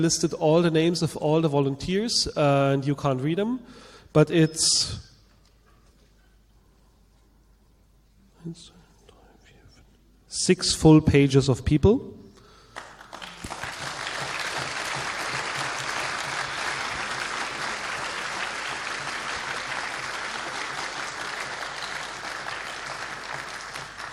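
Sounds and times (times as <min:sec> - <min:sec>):
speech: 0:00.0 - 0:05.1, 0:08.4 - 0:08.8, 0:10.3 - 0:12.2
audience applause for volunteers: 0:12.8 - 0:24.1.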